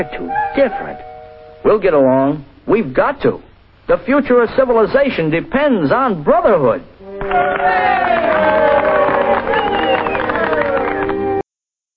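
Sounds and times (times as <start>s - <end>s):
speech: 0.0s - 9.6s
crowd cheering: 7.0s - 11.4s.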